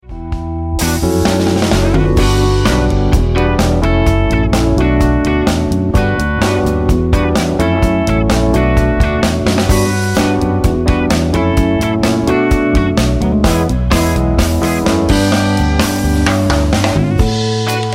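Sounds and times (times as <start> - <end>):
music track in B minor: 0.0 - 17.9.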